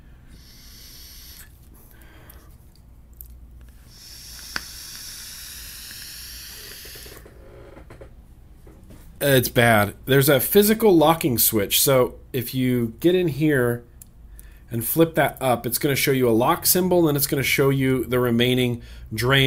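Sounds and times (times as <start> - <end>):
vape mod coil crackling and sizzling with button held down: 0.3 - 2.0, 3.6 - 7.3
speech: 9.2 - 13.9, 14.7 - 19.4.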